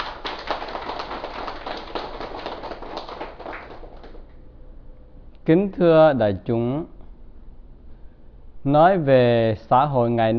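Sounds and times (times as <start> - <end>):
applause: 0.0 - 4.3
speech: 5.5 - 7.0, 8.6 - 10.3.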